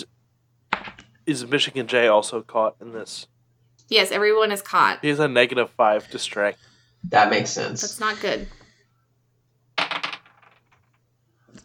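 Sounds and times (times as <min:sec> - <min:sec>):
twenty-sided die rolling away during a tabletop role-playing game: 0:00.7 - 0:01.2, 0:09.8 - 0:11.6
speech: 0:01.3 - 0:03.3, 0:03.9 - 0:08.6.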